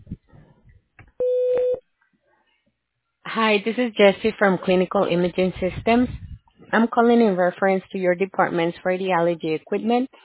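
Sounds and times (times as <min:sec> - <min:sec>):
voicemail electronic beep before recording a message: 0:01.2 - 0:01.8
speech: 0:03.4 - 0:10.2.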